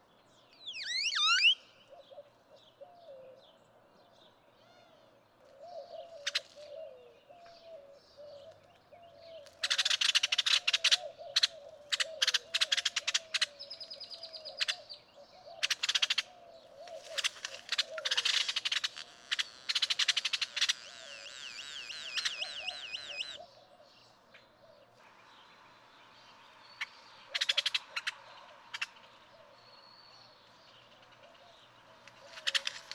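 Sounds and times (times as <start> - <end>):
Great-tailed Grackle calling: 0.7 - 2.2, 9.6 - 23.7, 24.4 - 32.9.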